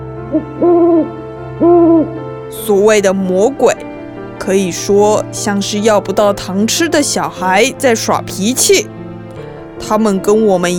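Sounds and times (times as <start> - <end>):
speech: 0.3 - 1.2, 2.5 - 3.9, 4.5 - 9.0, 9.8 - 10.7
owl hooting: 0.3 - 2.2.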